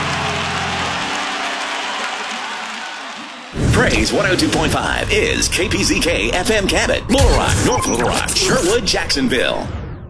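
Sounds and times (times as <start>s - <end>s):
congregation clapping during a church worship service: 0.0s - 3.6s
speech: 3.8s - 9.8s.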